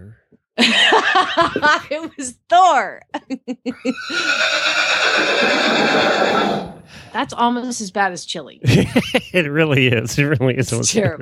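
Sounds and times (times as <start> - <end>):
laughter: 0.6 - 2.4, 3.2 - 4.4, 5.1 - 6.1, 8.6 - 11.2
speech: 0.7 - 11.2
horse neighing: 3.8 - 6.8.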